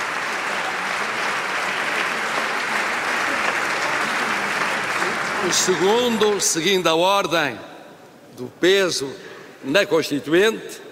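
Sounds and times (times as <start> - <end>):
applause in parliament: 0.0 - 6.9
speech: 5.4 - 7.7, 8.4 - 10.8.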